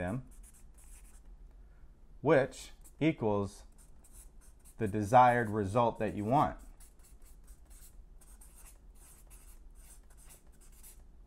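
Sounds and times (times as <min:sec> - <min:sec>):
speech: 0:00.0 - 0:00.4, 0:02.2 - 0:03.7, 0:04.8 - 0:06.6
writing scratching on a board, drawing lines and a star: 0:00.2 - 0:01.3, 0:03.7 - 0:11.2.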